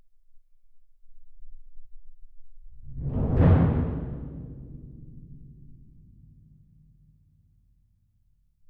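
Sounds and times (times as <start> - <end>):
percussion: 2.7 - 7.6.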